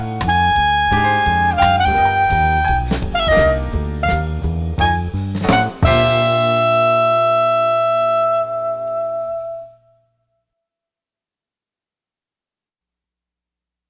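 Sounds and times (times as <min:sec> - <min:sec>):
jazz etudes: 0:00.0 - 0:10.0.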